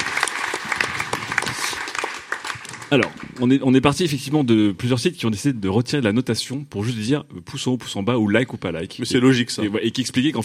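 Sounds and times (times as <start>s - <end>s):
studio audience applause: 0.0s - 3.6s
speech: 2.9s - 10.4s.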